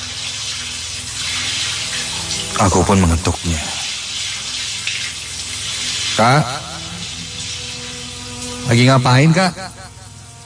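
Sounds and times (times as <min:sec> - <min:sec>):
water running from a bathroom tap: 0:00.0 - 0:10.4
speech: 0:02.6 - 0:03.8, 0:06.2 - 0:06.6, 0:08.7 - 0:09.8.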